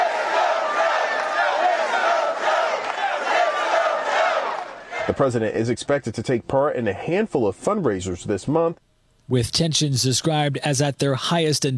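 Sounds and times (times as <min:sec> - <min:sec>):
rally crowd chanting and shouting in unison: 0:00.0 - 0:05.2
speech: 0:05.1 - 0:11.7.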